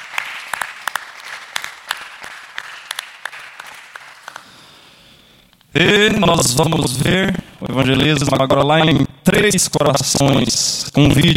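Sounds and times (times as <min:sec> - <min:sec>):
audience applauding: 0:00.0 - 0:04.9
speech: 0:05.8 - 0:11.3.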